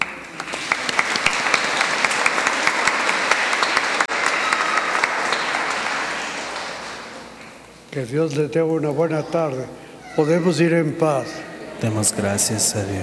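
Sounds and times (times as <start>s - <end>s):
audience applause: 0.0s - 13.0s
laughter: 0.0s - 13.0s
speech: 8.0s - 13.0s.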